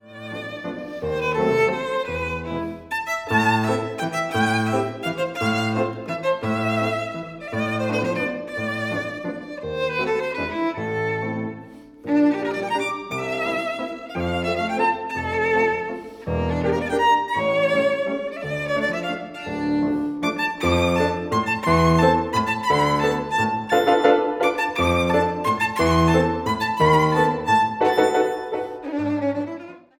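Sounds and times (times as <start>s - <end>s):
violin: 0.0s - 29.9s.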